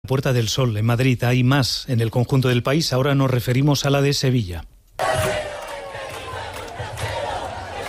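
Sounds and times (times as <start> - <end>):
speech: 0.1 - 4.7
protest march crowd chanting: 5.0 - 7.8.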